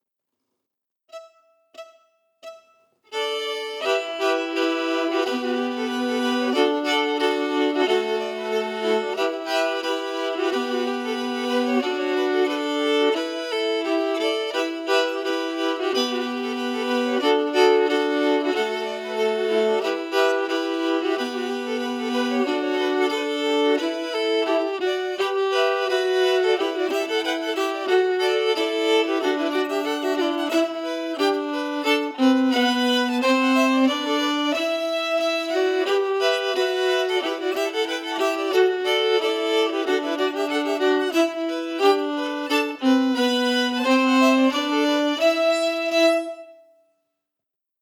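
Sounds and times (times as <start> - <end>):
emphasized musical harmonies: 1.1 - 46.8.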